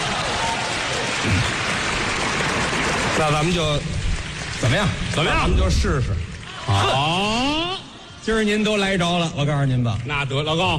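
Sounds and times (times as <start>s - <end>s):
audience applause at a stage comedy performance: 0.0s - 7.3s
speech: 3.2s - 4.0s, 4.6s - 10.7s.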